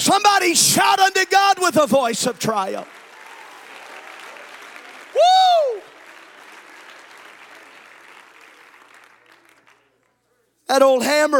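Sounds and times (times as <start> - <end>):
speech: 0.1 - 3.0, 10.7 - 11.3
audience clapping hands: 2.0 - 10.4.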